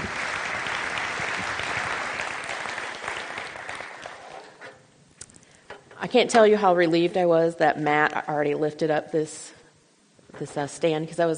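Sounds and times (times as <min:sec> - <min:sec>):
audience applause welcoming a speaker at a church gathering: 0:00.0 - 0:04.6
speech: 0:06.0 - 0:09.6, 0:10.4 - 0:11.3.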